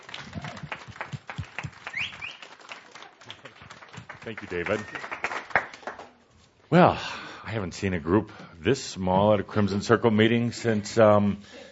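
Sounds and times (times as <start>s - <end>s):
audience applause: 0.0s - 6.2s
speech: 4.2s - 5.2s, 6.7s - 11.7s.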